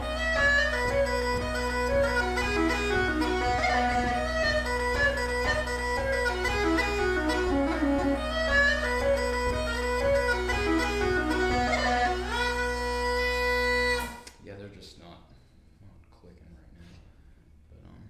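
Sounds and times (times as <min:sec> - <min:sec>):
Irish jig: 0:00.0 - 0:14.4.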